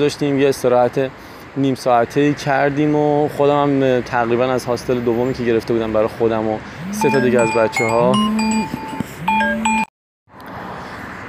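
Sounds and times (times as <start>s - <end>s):
speech: 0.0s - 8.9s
phone ringtone playing electronic melody: 6.8s - 9.9s.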